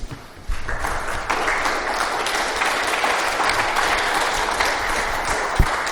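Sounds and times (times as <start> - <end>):
audience applause: 0.4 - 5.9.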